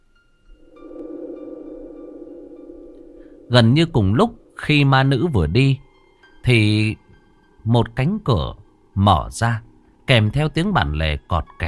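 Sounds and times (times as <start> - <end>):
hollow droning wind howling: 0.5 - 6.0
speech: 3.5 - 5.8, 6.4 - 7.0, 7.6 - 11.6.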